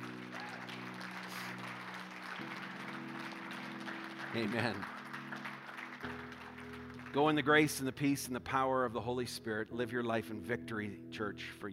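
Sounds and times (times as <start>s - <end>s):
audience clapping: 0.0s - 8.6s
speech: 4.3s - 5.0s, 7.1s - 11.7s.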